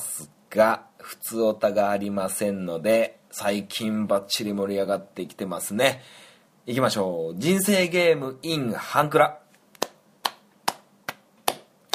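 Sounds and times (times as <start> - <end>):
speech: 0.5 - 9.4
hand claps from a single person: 9.7 - 11.9.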